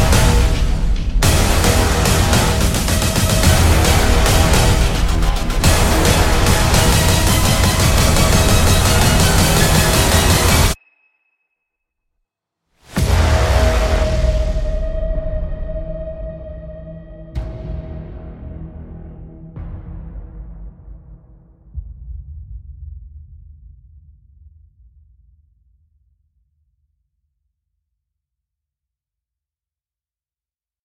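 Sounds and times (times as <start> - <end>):
epic instrumental music: 0.0 - 10.8, 12.9 - 21.8.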